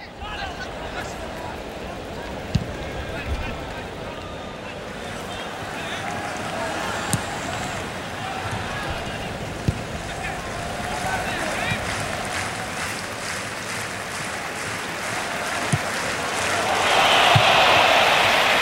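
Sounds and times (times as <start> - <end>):
football match crowd shouting and cheering: 0.0 - 18.6
football kick thumps: 2.5 - 2.9.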